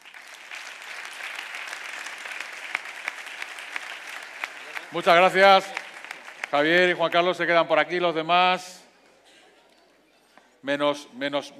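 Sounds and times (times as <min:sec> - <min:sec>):
audience applause at a 2019 gala greeting pilots: 0:00.0 - 0:07.0
speech: 0:04.9 - 0:05.8, 0:06.5 - 0:08.8, 0:10.6 - 0:11.5.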